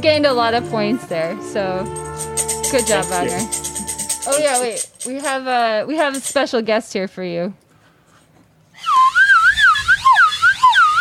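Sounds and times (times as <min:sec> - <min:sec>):
speech: 0:00.0 - 0:07.6
slide whistle played through a mask: 0:08.8 - 0:11.0.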